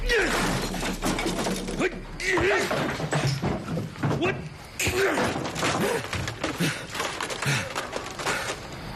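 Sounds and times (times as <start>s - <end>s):
architectural sand table model being smashed: 0.2s - 4.3s, 4.8s - 8.7s.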